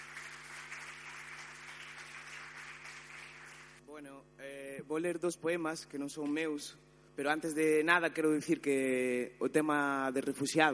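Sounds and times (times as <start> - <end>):
audience applause: 0.0 - 3.8
speech: 4.0 - 10.7.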